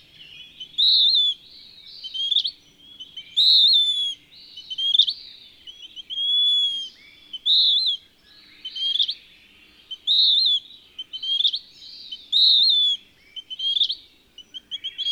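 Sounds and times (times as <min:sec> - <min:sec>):
western wood-pewee whistling: 0:00.6 - 0:01.4, 0:02.0 - 0:05.1, 0:05.7 - 0:08.0, 0:09.9 - 0:15.0.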